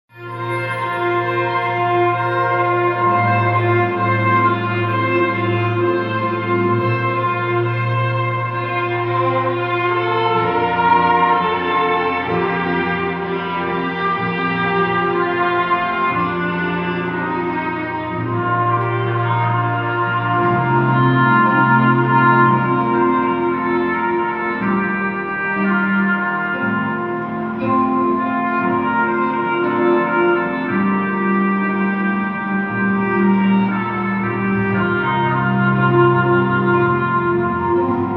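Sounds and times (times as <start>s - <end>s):
orchestra: 0.1s - 38.1s.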